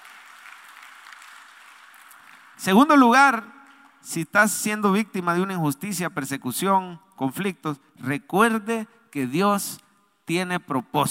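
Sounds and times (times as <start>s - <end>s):
audience applause: 0.0s - 2.7s
speech: 2.6s - 11.0s.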